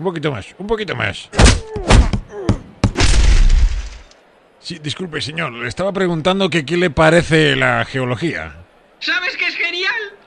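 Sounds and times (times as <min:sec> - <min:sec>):
speech: 0:00.0 - 0:02.2, 0:04.6 - 0:09.2
geologist's hammer striking hard: 0:01.4 - 0:04.0
loud crunching shattering rumble: 0:02.9 - 0:04.2.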